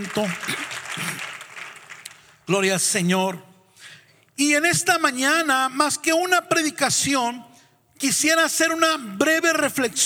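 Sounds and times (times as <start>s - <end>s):
speech: 0.0s - 1.1s, 2.5s - 3.5s, 4.4s - 10.0s
audience applause: 0.0s - 2.3s.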